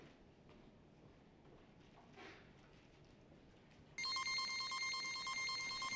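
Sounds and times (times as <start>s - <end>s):
machine running: 4.0s - 5.9s.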